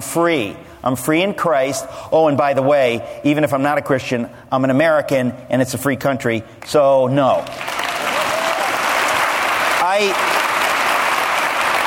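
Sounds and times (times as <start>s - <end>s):
speech: 0.1s - 7.7s, 10.0s - 10.3s
audience applause: 7.5s - 11.8s
person whooping: 8.2s - 8.8s.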